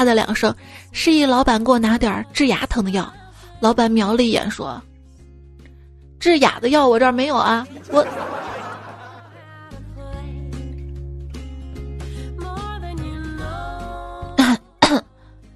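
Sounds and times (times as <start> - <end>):
speech: 0.0 - 4.9, 6.2 - 8.4
music with sustained tones: 0.0 - 15.5
laughter: 7.6 - 9.6
sharp coughs: 14.4 - 15.1.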